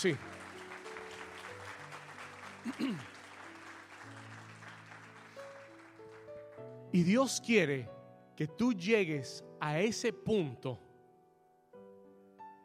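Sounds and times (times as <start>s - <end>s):
speech: 0.0s - 0.3s, 2.6s - 3.2s, 6.9s - 10.8s
audience applause: 0.0s - 6.7s.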